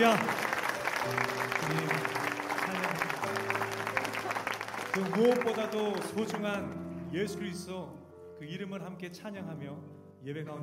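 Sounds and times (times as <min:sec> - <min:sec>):
speech: 0:00.0 - 0:00.4, 0:01.0 - 0:03.1, 0:05.0 - 0:10.6
audience applause: 0:00.0 - 0:06.7
sustained low keyboard chords: 0:00.0 - 0:10.6.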